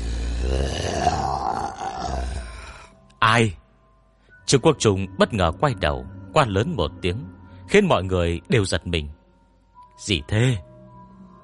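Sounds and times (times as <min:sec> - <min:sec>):
drunken-sounding moaning behind stone door: 0:00.0 - 0:03.0
speech: 0:03.4 - 0:03.6, 0:04.5 - 0:09.2, 0:10.0 - 0:10.7.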